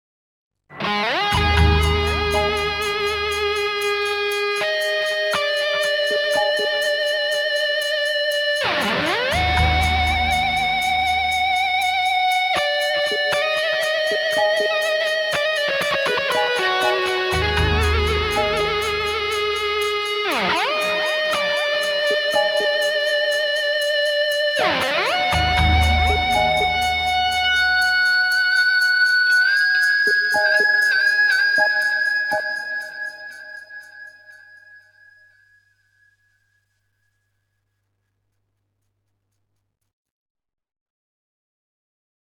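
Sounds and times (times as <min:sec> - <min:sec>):
guitar variations: 0:00.7 - 0:33.2.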